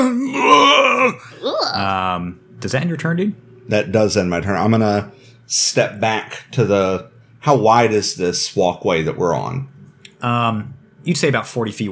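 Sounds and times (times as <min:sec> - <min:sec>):
voice imitating a monster's bestial yell: 0:00.0 - 0:01.8
speech: 0:00.0 - 0:11.9.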